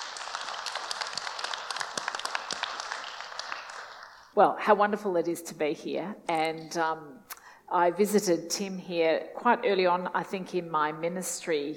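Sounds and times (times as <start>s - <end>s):
audience applause: 0.0s - 4.3s
speech: 4.4s - 11.7s.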